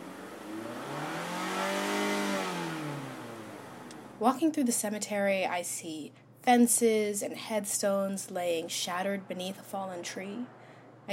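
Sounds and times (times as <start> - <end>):
car passing by on a road: 0.0 - 4.2
speech: 4.2 - 11.1.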